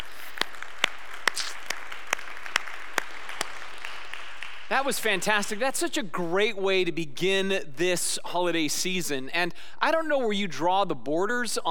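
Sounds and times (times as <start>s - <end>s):
audience applause: 0.0s - 5.2s
speech: 4.7s - 11.6s.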